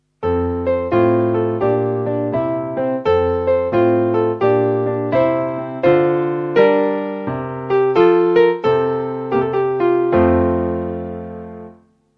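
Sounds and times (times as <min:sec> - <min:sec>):
piano: 0:00.0 - 0:12.1.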